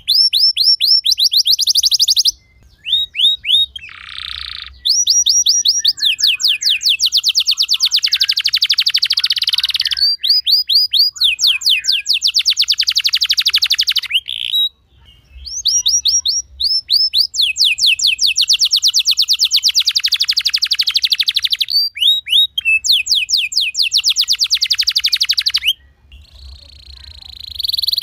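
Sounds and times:
canary song with fast dense chirping and rapid high trill: 0.0s - 28.0s.

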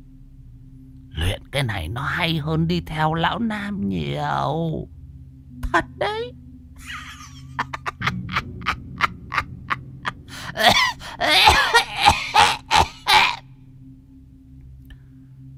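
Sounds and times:
speech: 1.5s - 5.0s, 5.7s - 7.0s
laughter: 6.8s - 13.4s
old woman hacking phlegmy cough, trying to clear phlegm from her throat: 10.4s - 13.4s.

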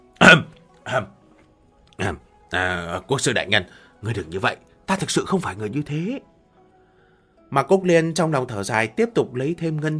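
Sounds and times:
dry coughs: 0.2s - 1.1s
speech: 0.3s - 1.2s, 2.0s - 6.3s, 7.5s - 9.9s.

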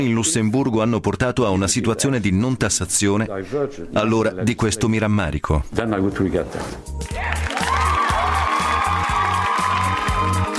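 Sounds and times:
speech: 0.0s - 7.5s
applause added as effect: 7.0s - 10.5s.

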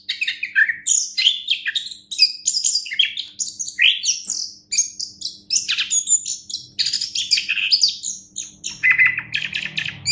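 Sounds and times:
Orange-headed thrush singing rich whistled and buzzy song: 0.0s - 10.1s.

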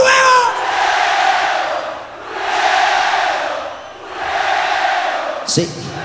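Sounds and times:
concert audience at a symphonic rock show chanting: 0.0s - 6.0s.

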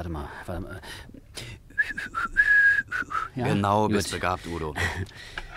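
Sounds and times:
speech: 0.0s - 2.4s, 3.4s - 5.4s
person whistling as a warning signal: 1.7s - 3.4s.

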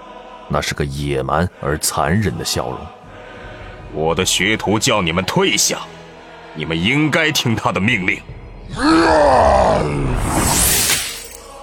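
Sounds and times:
speech: 0.5s - 3.0s, 3.9s - 6.0s, 6.6s - 10.8s
monster roaring in anger: 8.7s - 10.8s.

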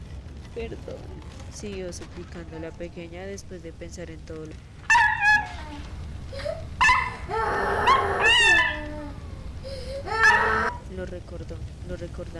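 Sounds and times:
speech: 0.6s - 4.8s, 5.7s - 6.7s, 11.0s - 12.3s
frightened large young dog yelping and whimpering barks: 4.9s - 5.7s, 6.8s - 9.2s, 10.1s - 10.8s.

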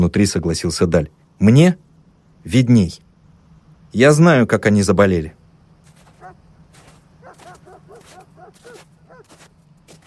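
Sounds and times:
steady low hum: 0.0s - 10.0s
speech: 0.1s - 1.8s, 2.4s - 3.0s, 3.9s - 5.4s
yard dog whining yips and soft barks: 7.2s - 9.3s.

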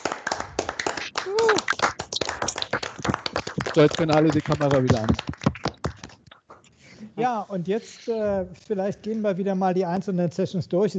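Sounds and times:
applause over open microphones: 0.0s - 6.2s
speech: 3.8s - 5.3s, 7.2s - 10.9s.

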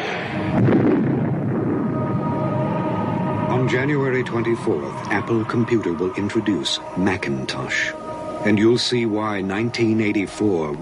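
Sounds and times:
screen exploding from a thrown hammer: 0.0s - 2.8s
speech: 3.7s - 10.7s.

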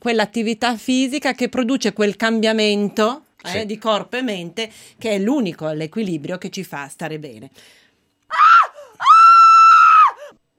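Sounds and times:
speech: 0.0s - 8.5s
person screaming: 8.3s - 10.4s.

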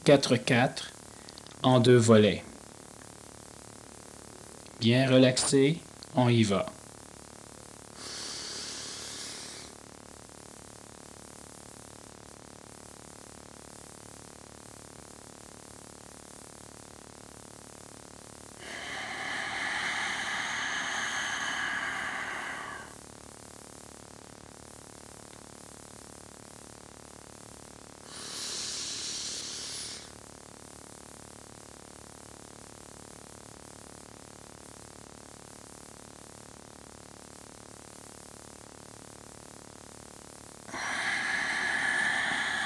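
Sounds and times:
speech: 0.0s - 1.0s, 1.6s - 2.5s, 4.8s - 6.8s
deep breaths during a relaxation exercise: 8.0s - 9.8s, 18.6s - 23.0s, 28.0s - 30.2s, 40.7s - 42.6s.

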